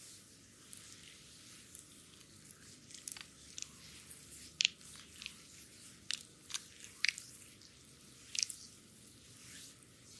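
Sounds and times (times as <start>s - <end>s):
dry brush strokes across skin during massage: 0.0s - 10.1s
brighter crisp flicks and taps: 2.9s - 7.3s.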